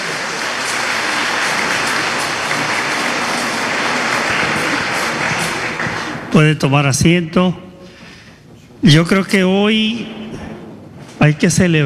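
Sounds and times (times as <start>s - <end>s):
loud audience applause: 0.0s - 6.4s
speech: 6.4s - 7.6s, 8.8s - 10.2s, 11.2s - 11.8s.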